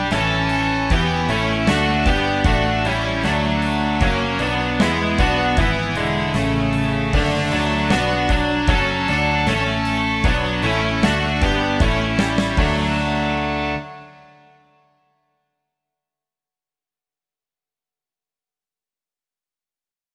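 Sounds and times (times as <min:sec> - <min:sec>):
rock music: 0:00.0 - 0:14.6.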